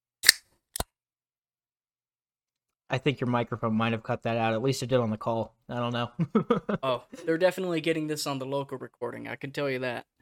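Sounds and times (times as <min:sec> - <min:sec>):
can being opened against a microphone: 0:00.2 - 0:00.4
speech: 0:02.9 - 0:10.2.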